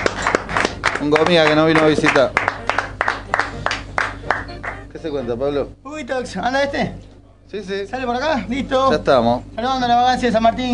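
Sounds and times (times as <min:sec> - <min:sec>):
applause: 0:00.0 - 0:04.9
speech: 0:01.0 - 0:02.5, 0:05.0 - 0:10.7.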